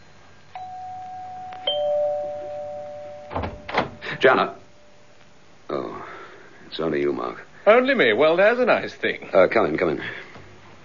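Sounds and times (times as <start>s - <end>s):
faint hiss: 0.0s - 10.8s
two-note doorbell chiming: 0.6s - 4.1s
speech: 4.2s - 4.6s, 6.7s - 10.2s.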